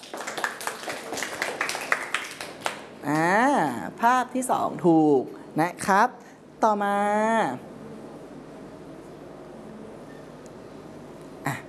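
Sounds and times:
hand clapping during a picture quiz lesson: 0:00.0 - 0:03.3
speech: 0:03.0 - 0:07.7.

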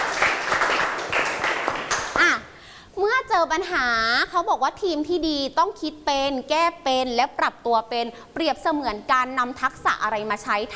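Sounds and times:
classmates clapping hands: 0:00.0 - 0:02.4
speech: 0:03.4 - 0:10.7.

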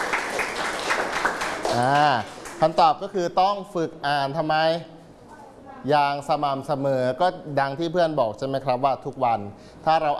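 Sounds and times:
class applause: 0:00.0 - 0:02.7
speech: 0:01.8 - 0:04.9, 0:05.8 - 0:10.1.

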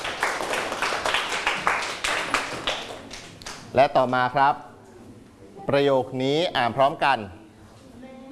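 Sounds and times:
students clapping for themselves: 0:00.0 - 0:03.7
speech: 0:03.7 - 0:04.7, 0:05.6 - 0:07.4.

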